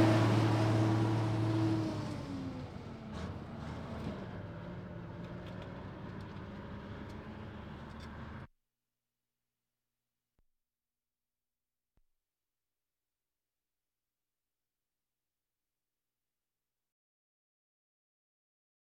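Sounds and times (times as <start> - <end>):
military vehicles: 0.0 - 8.5.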